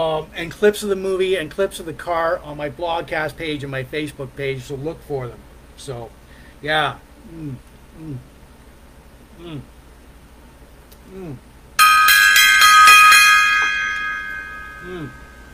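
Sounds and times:
speech: 0.0s - 8.3s, 9.4s - 9.7s, 11.1s - 11.5s, 14.8s - 15.2s
gong strike: 11.8s - 15.5s.

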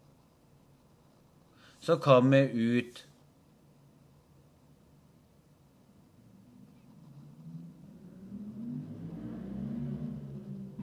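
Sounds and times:
speech: 1.8s - 3.1s
car driving past outside: 6.4s - 10.8s.

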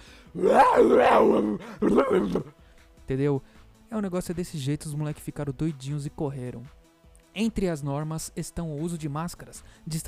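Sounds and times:
person imitating a gorilla in heat with strained yelling roars: 0.4s - 2.5s
speech: 0.4s - 6.8s, 7.4s - 10.0s.

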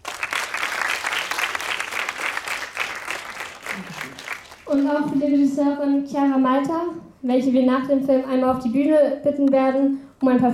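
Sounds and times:
audience applause at a film screening: 0.0s - 4.8s
speech: 4.7s - 10.5s.

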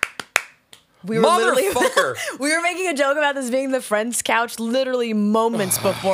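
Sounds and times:
hand claps in rhythm: 0.0s - 0.9s
speech: 1.0s - 6.1s
laughter: 1.2s - 2.4s.

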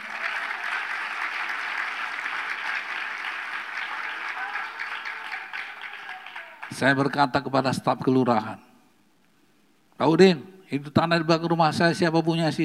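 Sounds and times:
audience applause: 0.0s - 7.0s
speech: 6.7s - 8.7s, 10.0s - 12.6s.

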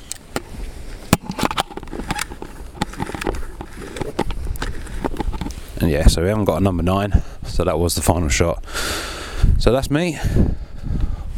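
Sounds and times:
film camera being wound on to the next frame: 0.0s - 0.5s, 1.1s - 5.6s
speech: 5.8s - 10.5s.

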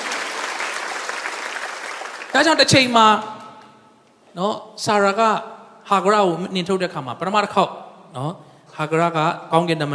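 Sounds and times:
church congregation clapping hands in praise of God: 0.0s - 3.1s
speech: 2.3s - 3.4s, 4.4s - 9.9s.

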